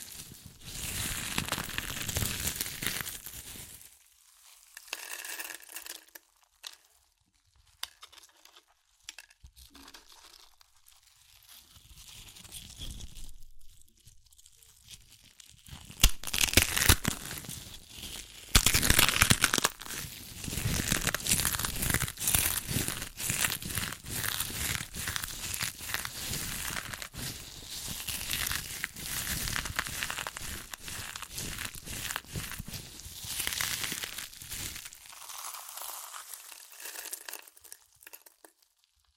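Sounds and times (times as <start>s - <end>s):
crunchy chips being crushed and eaten: 0.8s - 3.8s, 15.3s - 39.1s.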